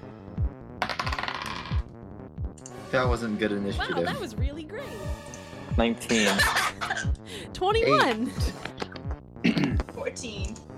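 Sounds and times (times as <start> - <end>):
dice being rolled: 0.8 - 1.8
speech: 2.9 - 8.7, 10.0 - 10.6
laughter: 6.0 - 7.1, 7.9 - 9.0.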